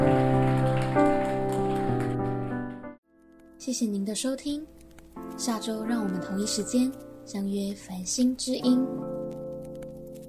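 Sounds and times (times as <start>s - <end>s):
audience applause: 0.0s - 2.8s
speech: 3.7s - 4.8s, 5.4s - 9.2s.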